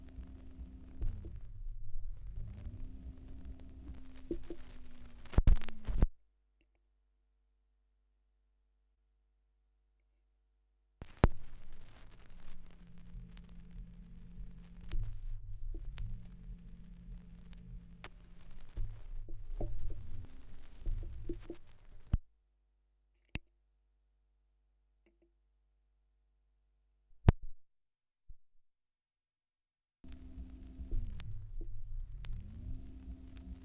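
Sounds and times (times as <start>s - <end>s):
78rpm record surface noise: 0.0s - 6.1s, 11.0s - 22.2s, 30.0s - 33.6s.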